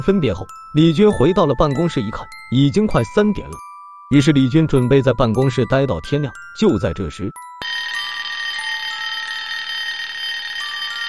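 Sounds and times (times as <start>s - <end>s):
speech: 0.0s - 7.8s
telephone ringing: 7.6s - 11.0s.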